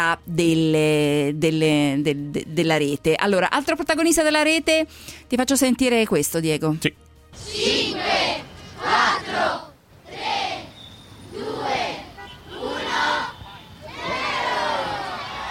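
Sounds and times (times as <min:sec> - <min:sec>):
speech: 0:00.0 - 0:09.7
children cheering at Christmas tree lighting in Rome: 0:12.6 - 0:15.5.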